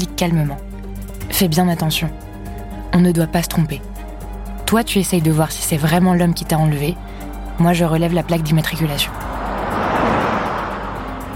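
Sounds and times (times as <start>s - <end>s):
speech: 0.0s - 0.7s, 1.4s - 2.3s, 2.9s - 3.9s, 4.7s - 9.3s
two cars passing each other on a road: 8.6s - 11.3s.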